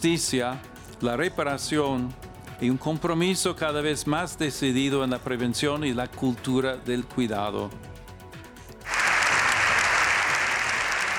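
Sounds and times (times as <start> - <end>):
speech: 0.0 - 7.9
sustained applause in parliament: 8.9 - 11.1.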